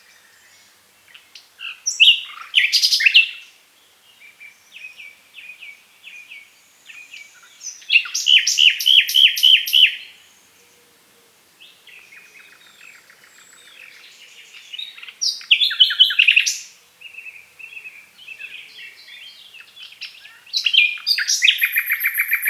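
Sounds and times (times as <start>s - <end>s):
Common nightingale song: 0.0s - 22.4s.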